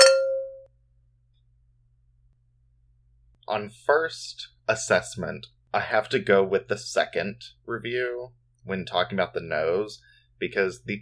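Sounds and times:
wine glasses clinking in a toast: 0.0 - 0.7
speech: 3.5 - 11.0.

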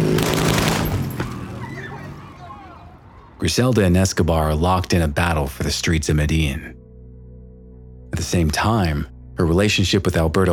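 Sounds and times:
gunfire of a motorcycle drive-by shooting: 0.0 - 1.5
speech: 3.4 - 6.8, 8.2 - 10.5.

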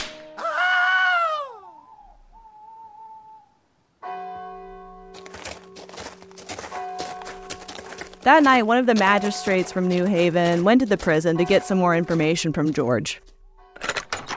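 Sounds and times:
whip cracks of a prison guard whipping a prisoner: 0.0 - 0.3
loud falling wail: 0.4 - 3.6
speech: 8.2 - 13.3.

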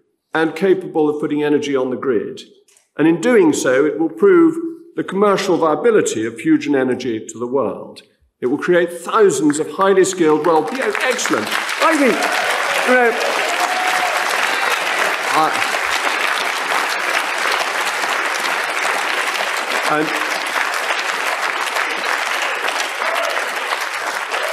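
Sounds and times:
speech: 0.4 - 13.5, 15.4 - 15.6, 19.9 - 20.2
large crowd applause: 9.4 - 24.5.

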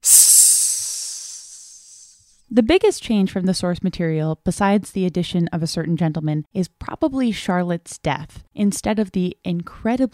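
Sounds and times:
loud hiss: 0.0 - 2.2
speech: 2.5 - 10.1.

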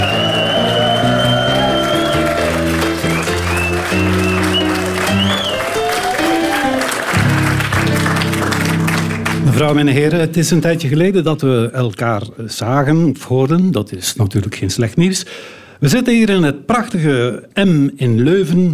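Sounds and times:
scattered cheers: 0.0 - 7.5
audience applause: 0.0 - 9.8
loud steady music with sustained tones: 0.0 - 9.8
speech: 9.7 - 18.7.

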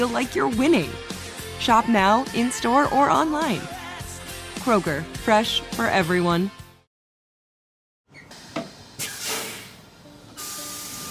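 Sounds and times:
speech: 0.0 - 3.8, 4.6 - 6.6
city bus: 8.1 - 11.1.

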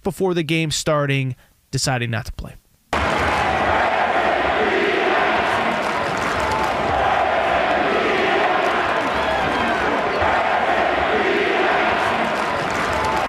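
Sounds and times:
speech: 0.0 - 2.6
Denver crowd chanting at basketball game: 3.0 - 13.2.

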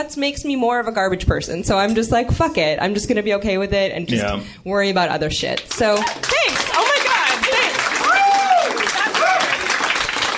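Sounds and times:
speech: 0.0 - 6.9
audience applause at comedy show: 5.7 - 10.3.

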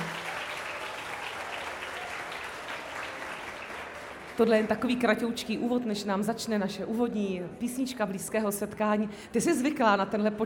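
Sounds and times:
live audience clapping: 0.0 - 5.1
speech: 4.4 - 10.4.

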